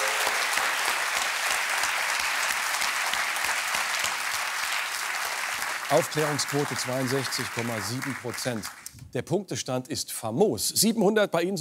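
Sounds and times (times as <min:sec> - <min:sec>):
audience applause: 0:00.0 - 0:08.9
speech: 0:05.9 - 0:11.5.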